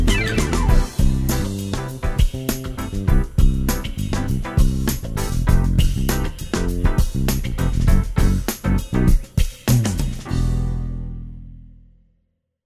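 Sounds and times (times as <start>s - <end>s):
background pads: 0.0s - 1.6s
jazz music: 0.0s - 11.4s.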